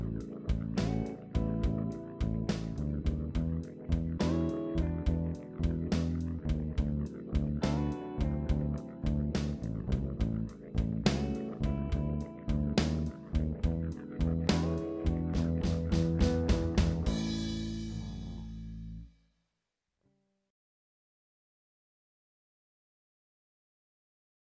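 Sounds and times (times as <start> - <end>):
blues guitar backing: 0.0 - 19.0.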